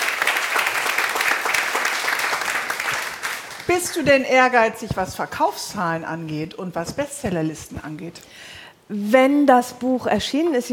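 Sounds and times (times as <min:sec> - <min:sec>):
audience applause: 0:00.0 - 0:03.9
speech: 0:03.7 - 0:10.7.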